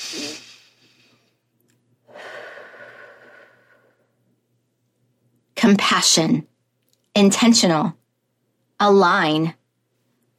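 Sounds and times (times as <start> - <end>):
deep breath drawn in through the nose during a calming breathing exercise: 0.0 - 1.3, 2.1 - 4.0
slow exhale out through the mouth: 0.0 - 1.3, 2.1 - 4.0
speech: 5.6 - 6.5, 7.2 - 8.0, 8.8 - 9.6.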